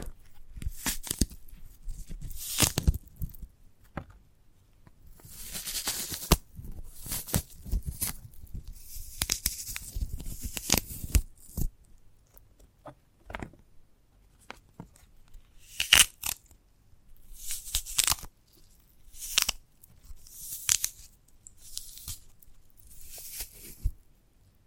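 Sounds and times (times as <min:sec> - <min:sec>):
sprouted coconut tearing and scraping: 0:00.0 - 0:03.4, 0:05.2 - 0:11.7, 0:15.6 - 0:16.6, 0:17.3 - 0:24.0.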